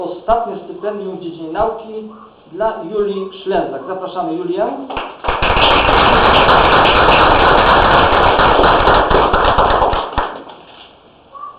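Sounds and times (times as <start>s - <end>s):
speech: 0.0s - 8.0s
crowd clapping: 4.9s - 10.6s.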